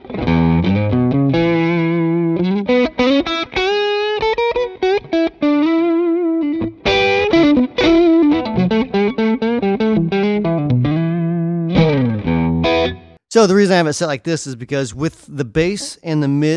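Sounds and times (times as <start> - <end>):
electric guitar lead line through TS-style overdrive pedal: 0.0 - 13.2
speech: 13.5 - 16.5.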